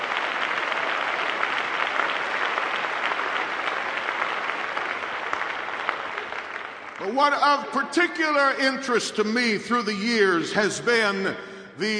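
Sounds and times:
audience applauding: 0.0 - 7.7
speech: 7.0 - 11.9.

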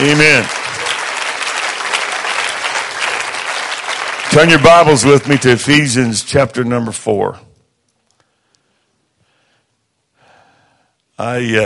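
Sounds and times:
speech: 0.0 - 0.6, 4.4 - 7.5, 11.2 - 11.6
audience clapping hands: 0.0 - 6.2.

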